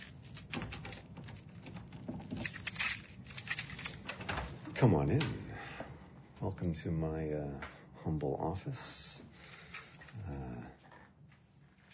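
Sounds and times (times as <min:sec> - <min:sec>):
keys jingling while unlocking office door: 0:00.0 - 0:04.4, 0:09.4 - 0:10.3
office door lock being worked: 0:00.0 - 0:04.7
speech: 0:04.8 - 0:05.4, 0:06.4 - 0:09.0.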